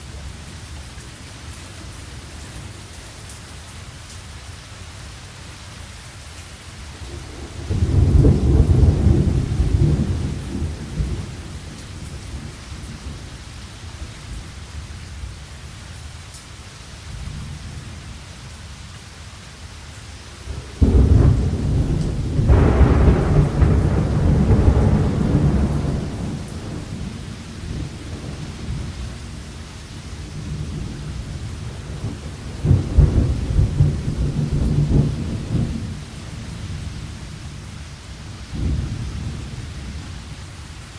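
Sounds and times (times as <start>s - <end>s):
thunderstorm: 7.1s - 13.4s, 20.5s - 37.7s, 38.4s - 40.2s.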